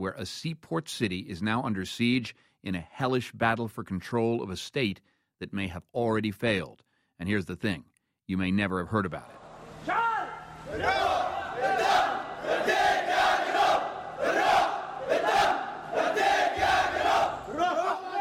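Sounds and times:
speech: 0.0 - 10.1, 10.7 - 11.2
large crowd shouting and chanting in besieged Yemeni city: 9.8 - 18.1.

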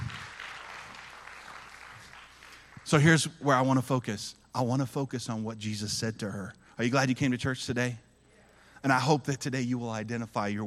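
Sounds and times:
audience applause: 0.0 - 2.8
speech: 2.9 - 8.1, 8.8 - 10.6.

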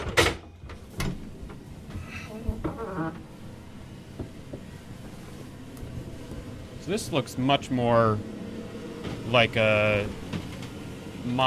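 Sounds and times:
watertight door on a ship opening: 2.5 - 3.4
speech: 6.9 - 8.3, 9.3 - 10.2, 11.2 - 11.4.

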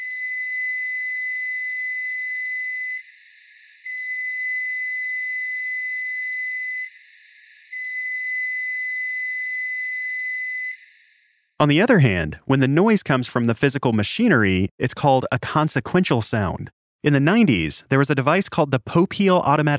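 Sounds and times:
long beeps of a newer model Frigidaire microwave: 0.0 - 3.0, 3.9 - 6.9, 7.8 - 10.8
speech: 11.6 - 19.7.

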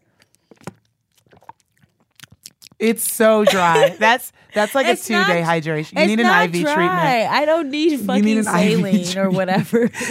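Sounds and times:
crunchy chewing on dry sausage: 0.0 - 2.8
speech: 2.8 - 10.0
laughter: 3.3 - 7.2, 8.1 - 10.0.

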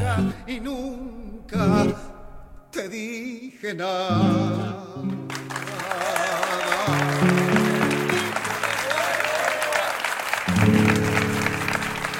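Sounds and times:
speech: 0.2 - 2.1, 2.8 - 5.2
applause: 5.1 - 12.1.

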